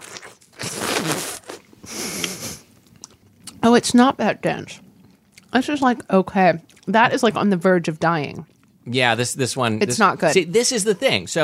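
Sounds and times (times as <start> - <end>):
soft smacking and sucking noises: 0.0 - 2.4
wet hissy slurping of juicy fruit flesh: 0.0 - 2.5
speech: 3.8 - 4.9, 5.5 - 11.4.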